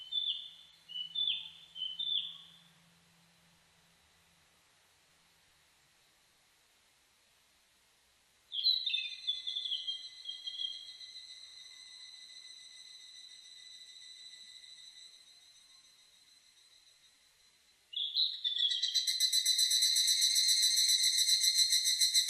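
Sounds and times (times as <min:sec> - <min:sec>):
evening cicada song: 0:00.0 - 0:03.0, 0:08.5 - 0:22.2.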